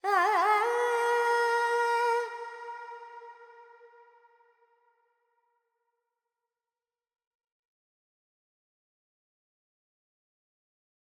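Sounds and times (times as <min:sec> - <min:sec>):
Carnatic female vocal alaps in Dorian mode: 0:00.0 - 0:04.2.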